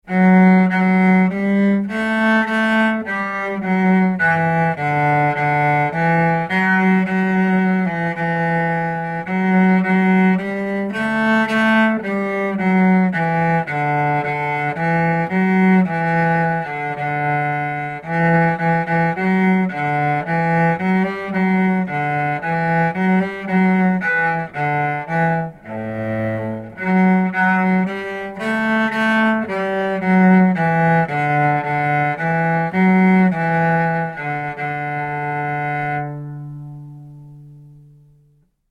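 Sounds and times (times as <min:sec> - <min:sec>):
cello: 0:00.0 - 0:38.5.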